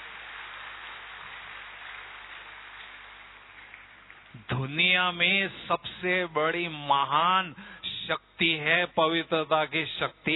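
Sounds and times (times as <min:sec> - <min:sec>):
audience clapping: 0:00.0 - 0:04.6
speech: 0:04.4 - 0:10.3.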